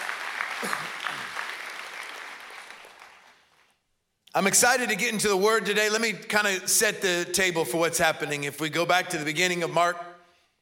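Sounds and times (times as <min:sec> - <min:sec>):
church congregation clapping to welcome their church family: 0:00.0 - 0:03.8
speech: 0:04.4 - 0:10.1.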